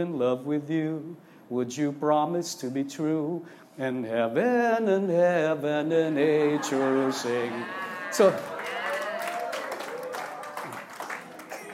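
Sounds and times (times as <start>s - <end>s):
speech: 0.0s - 8.8s
laughter: 6.0s - 10.8s
loud hand clapping: 8.4s - 11.7s.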